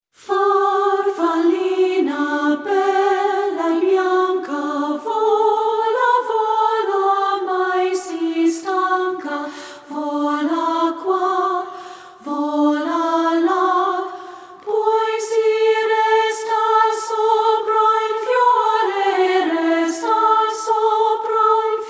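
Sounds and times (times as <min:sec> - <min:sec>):
a cappella Italian folk songs: 0:00.2 - 0:21.8.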